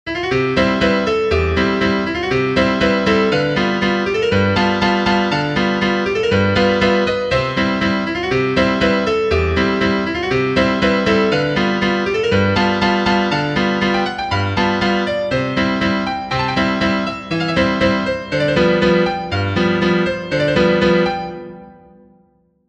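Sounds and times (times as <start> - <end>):
piano: 0.0 - 22.6.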